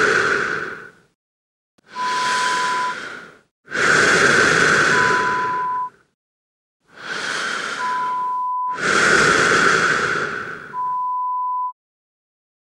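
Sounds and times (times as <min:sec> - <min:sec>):
heavy breathing: 0:00.0 - 0:01.2, 0:01.8 - 0:05.9, 0:06.9 - 0:10.8.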